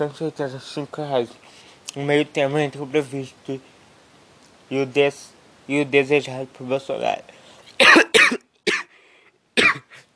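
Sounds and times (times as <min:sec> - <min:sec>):
speech: 0:00.0 - 0:03.7, 0:04.7 - 0:08.1
person coughing after choking on saliva: 0:07.8 - 0:09.0, 0:09.6 - 0:10.1.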